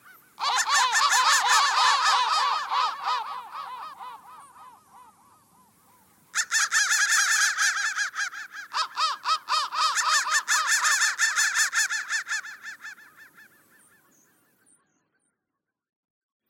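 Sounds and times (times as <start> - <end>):
crow calling: 0.0 - 14.5.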